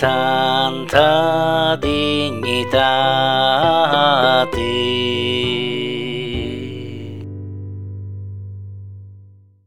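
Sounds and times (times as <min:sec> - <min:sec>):
Holy Week voice: 0:00.0 - 0:07.2.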